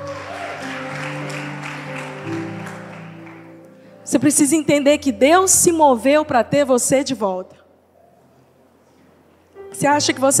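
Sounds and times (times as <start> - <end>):
audience applause: 0.0 - 3.9
speech: 4.1 - 7.6, 9.8 - 10.3.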